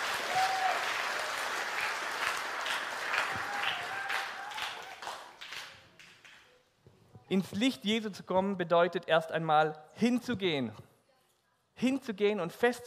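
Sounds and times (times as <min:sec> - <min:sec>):
short applause from audience: 0:00.0 - 0:06.1
speech: 0:07.3 - 0:10.9, 0:11.8 - 0:12.8.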